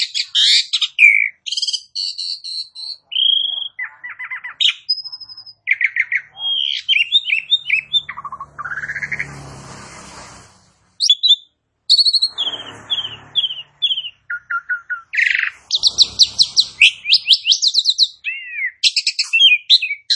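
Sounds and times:
Asian pied starling singing: 0.0s - 9.4s, 11.0s - 20.1s.

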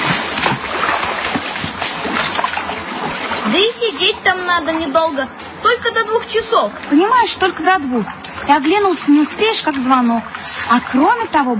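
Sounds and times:
girl splashing water in a huge basin while washing her feet: 0.0s - 11.5s
speech: 3.6s - 11.5s.

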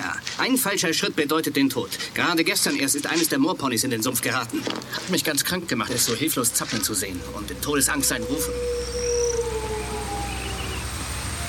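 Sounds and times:
speech: 0.4s - 9.0s
steady low rumble: 5.6s - 11.4s
faint high whine: 5.8s - 11.4s
eerie distant howl over the moor: 5.9s - 11.4s.

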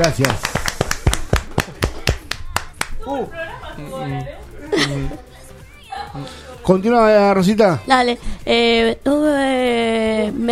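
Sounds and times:
speech: 0.0s - 0.5s, 3.1s - 5.3s, 6.1s - 10.5s
applause: 0.0s - 3.0s.

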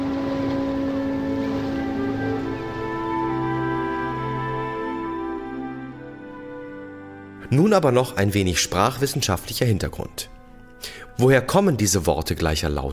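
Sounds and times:
rush of water: 0.0s - 5.1s
passenger ship engine droning at sea: 0.0s - 7.4s
speech: 7.5s - 12.9s.

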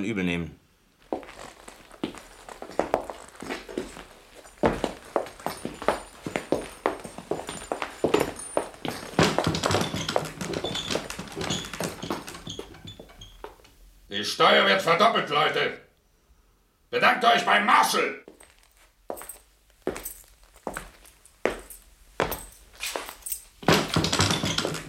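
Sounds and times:
speech: 0.0s - 0.6s, 14.2s - 15.8s, 16.9s - 18.3s
horse hooves clip-clopping at a trot: 1.1s - 13.7s, 20.0s - 24.8s.

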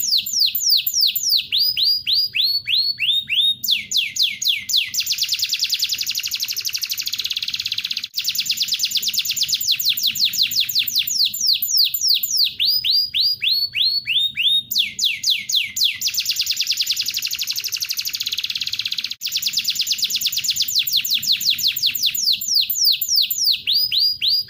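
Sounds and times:
national contest champion canary singing: 0.0s - 24.4s.

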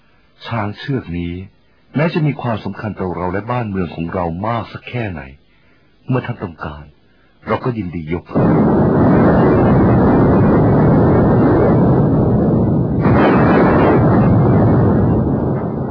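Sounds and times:
speech: 0.5s - 5.4s, 6.1s - 9.9s
loud rumbling thunder: 8.4s - 15.9s.

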